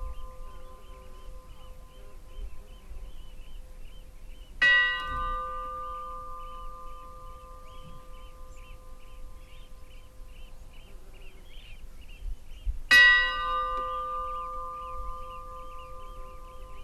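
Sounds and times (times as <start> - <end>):
Stadarfellskirkja funeral bell ringing: 4.6 - 9.0, 12.9 - 16.8.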